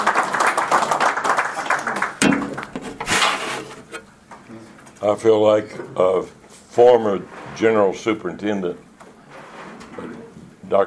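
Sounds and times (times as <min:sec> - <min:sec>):
audience applause: 0:00.0 - 0:02.8
speech: 0:05.1 - 0:08.9.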